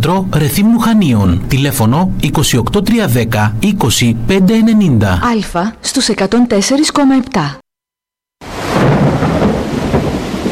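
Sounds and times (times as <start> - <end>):
speech: 0.0 - 7.6
heavy downpour: 8.4 - 10.5
low rumbling thunder: 8.4 - 10.5.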